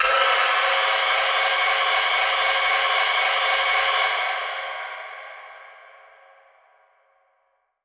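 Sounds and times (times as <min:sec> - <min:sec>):
alarm siren samples with reverb at 120 bpm: 0:00.0 - 0:04.5.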